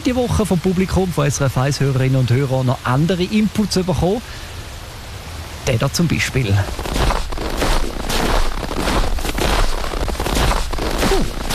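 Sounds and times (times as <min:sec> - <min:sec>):
speech: 0:00.1 - 0:04.6, 0:05.6 - 0:07.5
footsteps walking through a snowfield: 0:06.7 - 0:11.5.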